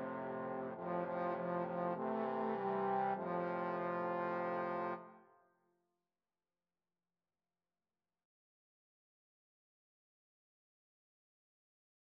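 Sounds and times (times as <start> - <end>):
trombone quartet: 0.0 - 5.1.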